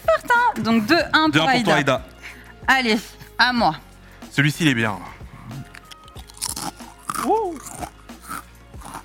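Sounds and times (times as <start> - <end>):
speech: 0.6 - 5.2
crunching potato chips: 5.7 - 9.0.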